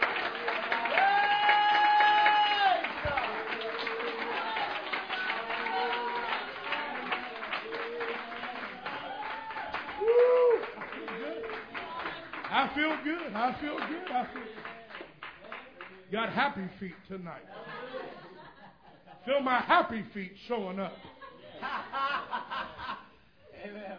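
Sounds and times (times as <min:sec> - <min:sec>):
audience clapping hands in praise: 0:00.0 - 0:17.0
speech: 0:12.8 - 0:14.8, 0:16.1 - 0:17.6, 0:19.2 - 0:21.1
laughter: 0:17.5 - 0:19.3, 0:21.0 - 0:23.2.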